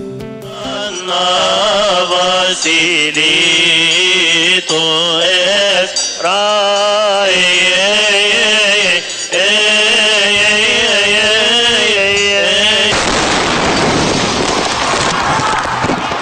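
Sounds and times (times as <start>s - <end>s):
Egyptian Coptic Christian choir singing: 0.4s - 13.0s
bomb detonated inside a church: 12.9s - 16.0s.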